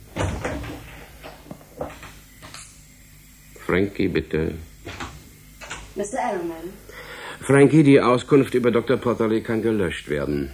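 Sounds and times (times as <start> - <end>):
door opening and closing: 0.0 - 2.7, 4.8 - 6.0
speech: 3.7 - 4.7, 6.0 - 10.5.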